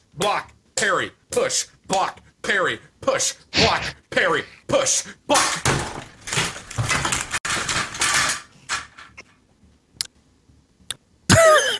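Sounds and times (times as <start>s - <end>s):
speech: 0.2s - 6.0s
chair breaking: 5.3s - 9.2s.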